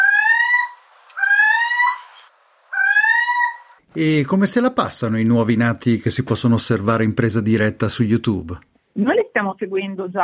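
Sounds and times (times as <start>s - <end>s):
little owl call: 0.0s - 3.8s
speech: 3.9s - 10.2s.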